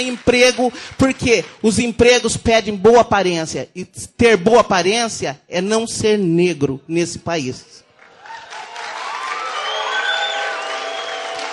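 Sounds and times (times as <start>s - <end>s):
speech: 0.0s - 7.8s
crowd booing: 8.1s - 11.5s.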